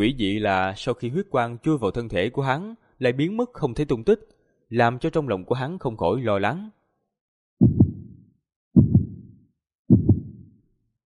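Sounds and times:
speech: 0:00.0 - 0:06.8
heartbeat sound effect lub-dub thumps: 0:07.6 - 0:08.2, 0:08.8 - 0:10.6.

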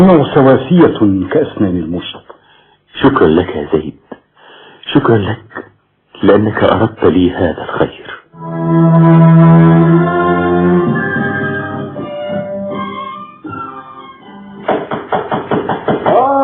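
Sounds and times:
speech: 0:00.0 - 0:02.3, 0:03.0 - 0:04.0, 0:04.9 - 0:11.0
knocking on a door: 0:14.6 - 0:16.3.

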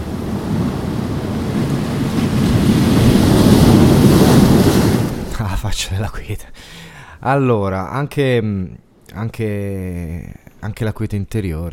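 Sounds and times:
sea waves breaking on the shore at Giampilieri: 0:00.0 - 0:05.4
faint windy rumble: 0:00.0 - 0:11.7
speech: 0:06.0 - 0:11.7.

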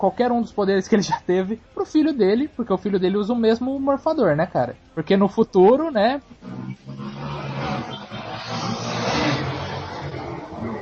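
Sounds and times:
speech: 0:00.0 - 0:06.6
motorcycle engine revving: 0:06.2 - 0:10.8.

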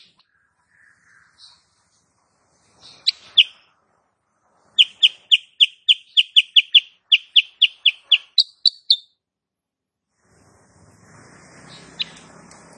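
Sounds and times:
sooty-headed bulbul chirping: 0:00.0 - 0:00.2, 0:02.8 - 0:03.7, 0:04.8 - 0:09.2.

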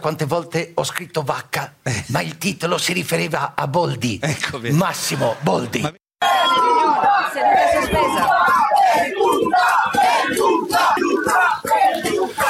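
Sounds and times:
speech: 0:00.0 - 0:11.0
crowd of voices shouting in a parliament chamber: 0:06.2 - 0:12.4.

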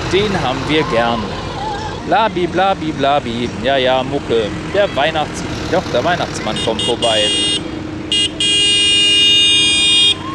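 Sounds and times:
truck engine rumbling: 0:00.0 - 0:10.3
speech: 0:00.1 - 0:01.4, 0:02.0 - 0:07.6
truck horn honking: 0:04.8 - 0:10.3.

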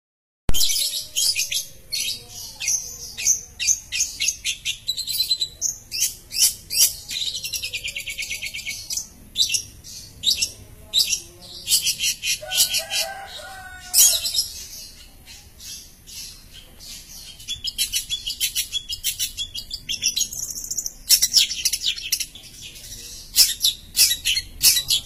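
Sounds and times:
long-tailed shrike chattering song: 0:00.5 - 0:25.0.

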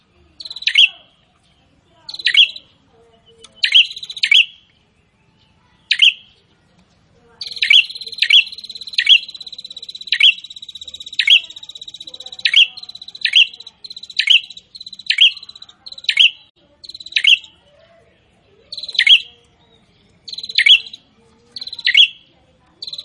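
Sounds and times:
prinia buzzing trills: 0:01.9 - 0:04.6, 0:07.4 - 0:17.6, 0:18.6 - 0:23.0.

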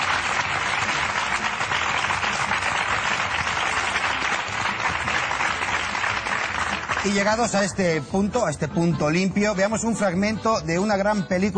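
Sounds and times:
studio audience applause for the hosts of a comedy show: 0:00.0 - 0:07.6
speech: 0:07.0 - 0:11.5.

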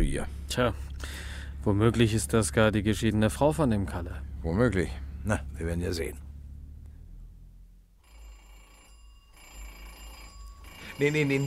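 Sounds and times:
speech: 0:00.0 - 0:06.2, 0:11.0 - 0:11.4
doorbell rung insistently: 0:08.0 - 0:11.4.

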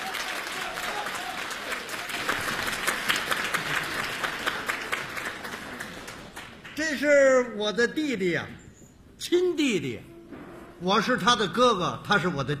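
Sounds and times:
audience applause: 0:00.0 - 0:06.8
speech: 0:06.9 - 0:08.6, 0:09.2 - 0:10.1, 0:10.8 - 0:12.5.

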